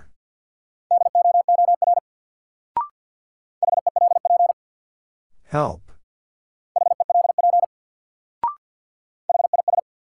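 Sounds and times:
Morse code beeps: 0:00.9 - 0:02.0, 0:03.6 - 0:04.6, 0:06.8 - 0:07.7, 0:09.3 - 0:09.8
speech: 0:05.5 - 0:05.9.

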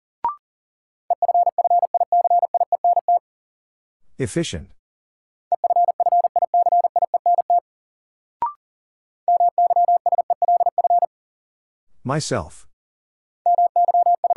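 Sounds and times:
Morse code tones at forty words per minute: 0:01.1 - 0:03.2, 0:05.5 - 0:07.6, 0:09.3 - 0:11.1, 0:13.5 - 0:14.3
speech: 0:04.2 - 0:04.8, 0:12.1 - 0:12.7.

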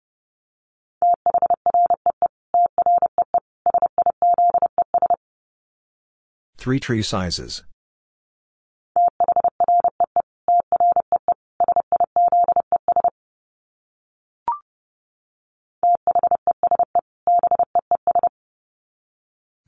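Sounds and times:
Morse code tones at 30 wpm: 0:01.0 - 0:05.2, 0:09.0 - 0:13.1, 0:15.9 - 0:18.3
speech: 0:06.6 - 0:07.7.

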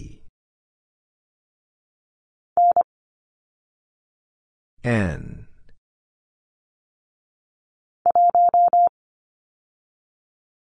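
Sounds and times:
morse code letter h at 25 wpm: 0:02.6 - 0:02.8, 0:08.1 - 0:08.9.

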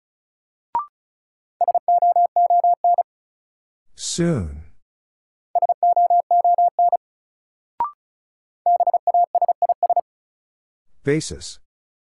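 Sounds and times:
Morse code tones at 35 words per minute: 0:01.6 - 0:03.0, 0:05.6 - 0:07.0, 0:08.7 - 0:10.0
speech: 0:04.0 - 0:04.7, 0:11.1 - 0:11.6.

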